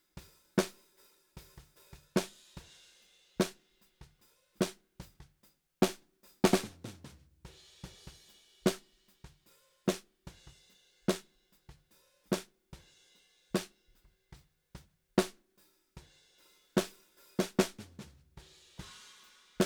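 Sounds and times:
snare drum: 0:00.6 - 0:02.7, 0:05.8 - 0:09.0, 0:15.2 - 0:15.4, 0:16.8 - 0:19.6.

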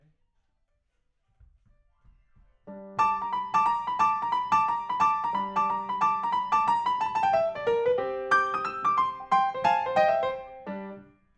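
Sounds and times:
rock and roll piano: 0:02.7 - 0:11.1.

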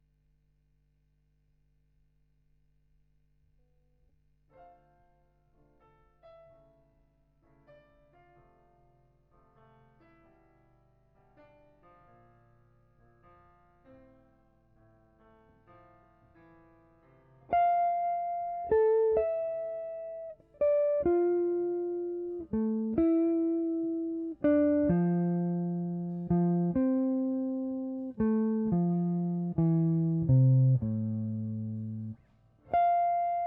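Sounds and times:
guitar: 0:17.5 - 0:33.4.

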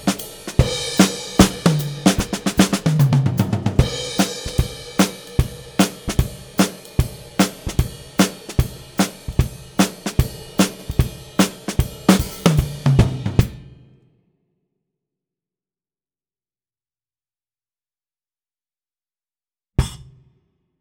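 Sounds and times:
ragtime drums: 0:00.0 - 0:13.8.

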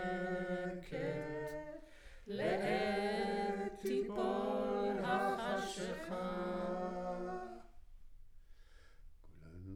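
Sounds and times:
choir recorded with center U47 microphone: 0:00.0 - 0:07.8.

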